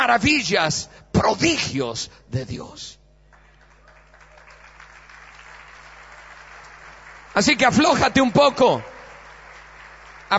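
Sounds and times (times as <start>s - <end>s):
speech: 0.1s - 3.0s, 7.4s - 8.9s
weak audience applause: 3.3s - 10.3s.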